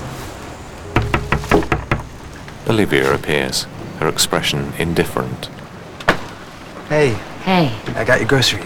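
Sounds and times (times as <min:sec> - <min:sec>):
light taps on the glass of a house's front door: 0:01.0 - 0:02.6
speech: 0:02.7 - 0:05.6, 0:06.9 - 0:08.6.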